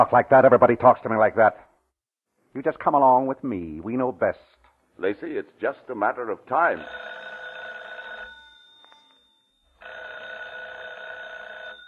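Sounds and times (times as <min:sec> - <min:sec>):
speech: 0:00.0 - 0:01.7, 0:02.5 - 0:07.2
telephone bell ringing: 0:06.8 - 0:11.8.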